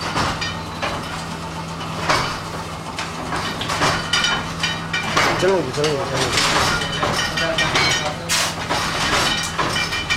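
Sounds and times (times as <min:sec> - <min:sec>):
linotype printing press operating: 0:00.0 - 0:10.1.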